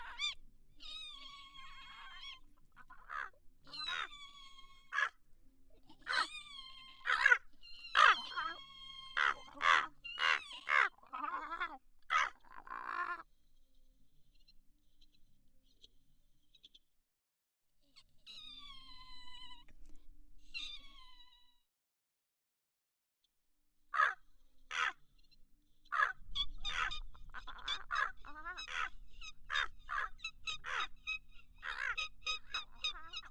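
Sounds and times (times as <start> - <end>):
estuary bird calls at the Erme estuary: 0.0 - 5.2, 6.0 - 13.1, 26.0 - 33.2.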